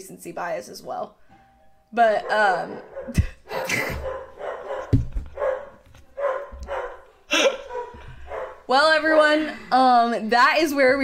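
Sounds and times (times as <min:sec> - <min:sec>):
speech: 0:00.0 - 0:01.2, 0:01.9 - 0:04.2, 0:08.7 - 0:11.0
dog barking at people at the door: 0:02.2 - 0:08.7.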